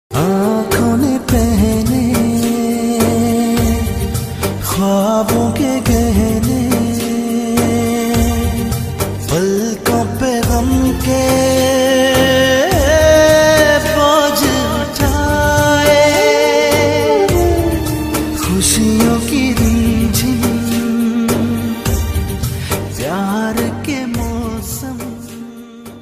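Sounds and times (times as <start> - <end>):
emotional Pakistani music: 0.1 - 25.9.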